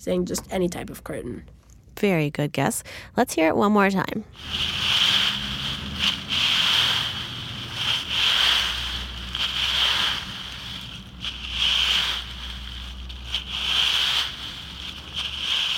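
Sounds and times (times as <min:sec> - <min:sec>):
speech: 0:00.0 - 0:05.2
low constant rumble: 0:04.2 - 0:15.7
rake scratching through dry leaves: 0:04.4 - 0:15.7.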